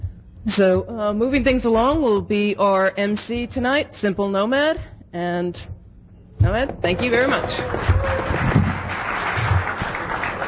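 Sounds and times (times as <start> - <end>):
speech: 0.4 - 5.7, 6.4 - 8.6
audience applause: 7.0 - 10.4.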